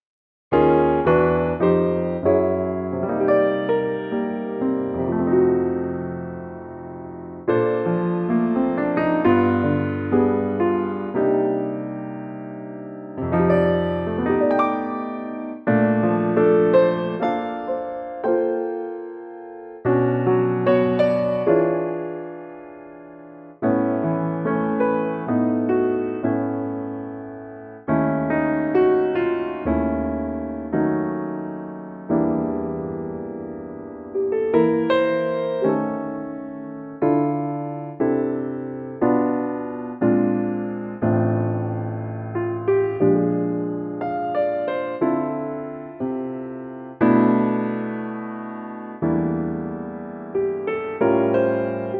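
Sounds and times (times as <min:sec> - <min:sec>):
piano in D minor: 0:00.5 - 0:51.9.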